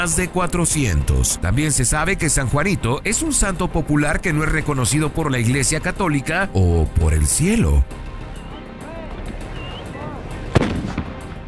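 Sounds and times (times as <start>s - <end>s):
speech: 0.0s - 8.1s
whistles: 8.3s - 8.7s, 9.5s - 10.0s
handmade explosive charge on a hammer slammed against a rail: 10.6s - 11.2s.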